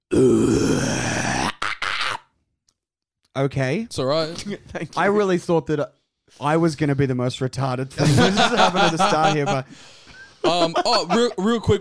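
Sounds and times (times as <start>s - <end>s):
death metal style guttural growling scream: 0.1s - 2.2s
speech: 3.4s - 11.7s
laughter: 8.0s - 11.7s.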